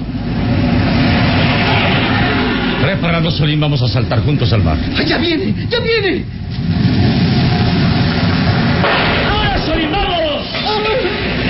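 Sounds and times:
reconnaissance airplane engine roaring while diving to attack: 0.0 - 11.4
speech: 3.2 - 7.3.

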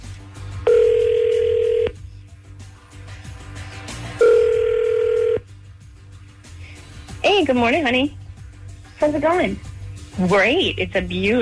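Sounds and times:
phone dial tone while dialing: 0.7 - 2.0, 4.2 - 5.4
speech: 7.5 - 8.2, 9.0 - 11.4.

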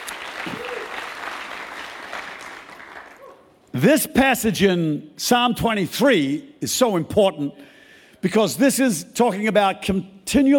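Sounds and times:
sustained applause from a large crowd: 0.0 - 3.4
speech: 3.8 - 10.5.

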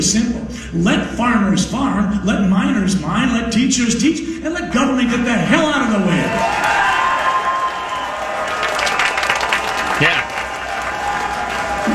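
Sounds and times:
speech: 0.0 - 7.0
audience clapping: 6.3 - 11.9.

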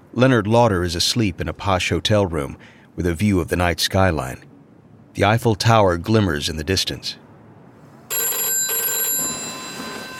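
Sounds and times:
speech: 0.2 - 4.5, 5.2 - 7.2
hotel room telephone bell ringing: 8.1 - 10.1.

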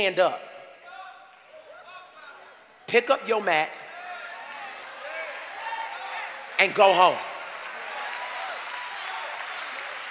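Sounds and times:
speech: 0.0 - 0.5, 2.9 - 3.8, 6.6 - 7.3
audience clapping: 4.4 - 10.1.

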